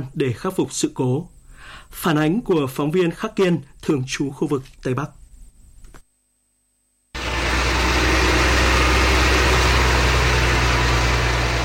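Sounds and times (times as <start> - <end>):
speech: 0.0 - 5.2
heavy excavators and bulldozers roaring in rain: 7.2 - 11.6.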